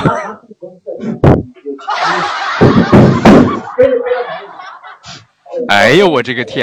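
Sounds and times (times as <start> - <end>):
laughter: 1.8 - 5.3
loud banging on a door: 2.6 - 3.6
speech: 5.7 - 6.6.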